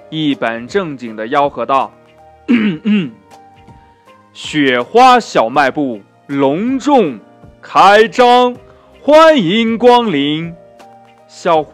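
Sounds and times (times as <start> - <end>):
speech: 0.1 - 3.2, 4.4 - 10.6, 11.3 - 11.7
throat clearing: 2.5 - 3.2.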